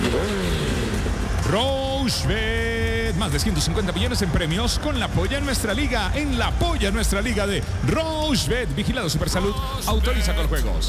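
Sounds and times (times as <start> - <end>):
motorcycle engine revving: 0.0 - 6.4
speech: 1.5 - 2.6, 3.2 - 10.8.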